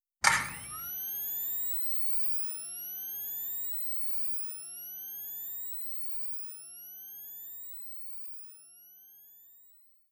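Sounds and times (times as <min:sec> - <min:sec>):
scanner: 0:00.2 - 0:09.9.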